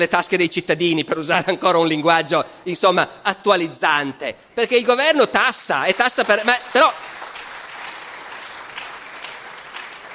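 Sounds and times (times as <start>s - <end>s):
speech: 0.0s - 7.1s
audience applause: 5.8s - 10.1s.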